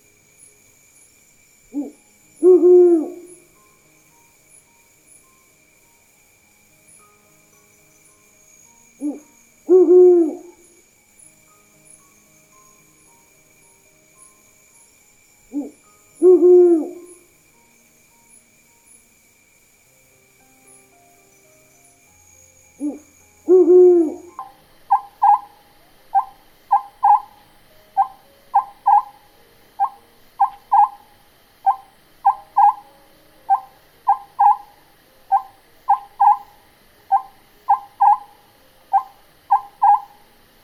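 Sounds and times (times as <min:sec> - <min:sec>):
calm night forest ambience: 0:00.0 - 0:40.6
mystical owl hooting in a calm night forest: 0:01.7 - 0:03.5, 0:09.0 - 0:10.8, 0:15.5 - 0:17.3, 0:22.8 - 0:40.3.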